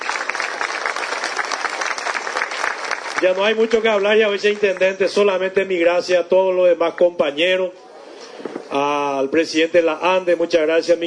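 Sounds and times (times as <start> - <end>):
audience applause: 0.0 - 4.8
speech: 3.2 - 7.8, 8.7 - 11.0.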